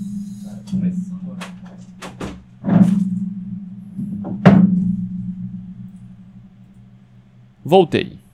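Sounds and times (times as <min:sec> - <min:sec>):
door being pushed closed: 0:00.4 - 0:05.1
speech: 0:07.7 - 0:08.2.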